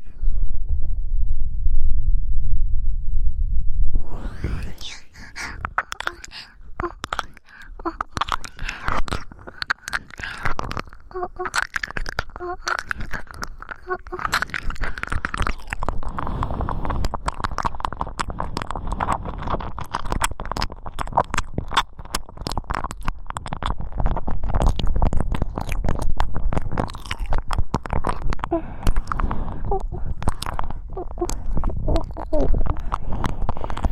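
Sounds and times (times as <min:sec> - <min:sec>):
low muffled rumble: 0:00.0 - 0:33.9
breathing: 0:04.1 - 0:10.8, 0:12.9 - 0:17.4, 0:18.2 - 0:19.8, 0:28.3 - 0:33.9
ear licking: 0:04.3 - 0:33.9.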